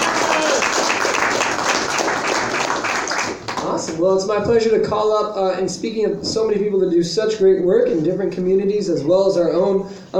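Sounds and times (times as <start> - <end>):
audience clapping: 0.0 - 4.0
speech: 4.0 - 10.1.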